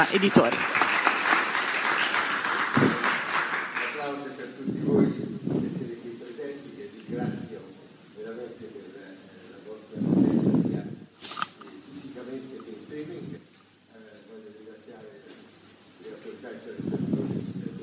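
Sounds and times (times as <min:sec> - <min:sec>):
audience applause: 0:00.0 - 0:04.4
man speaking into a microphone: 0:03.8 - 0:11.1, 0:11.8 - 0:13.4, 0:14.0 - 0:17.8.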